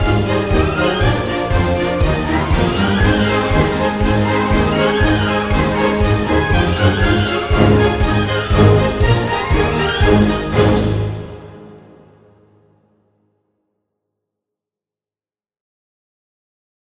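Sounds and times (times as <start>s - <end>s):
Christmas fanfare: 0.0s - 12.7s.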